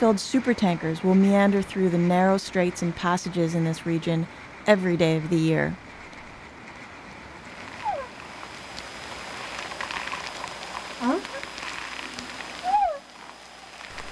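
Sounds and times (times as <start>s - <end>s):
speech: 0.0s - 5.8s
whales singing in Whale Channel: 7.7s - 8.3s, 10.9s - 14.1s.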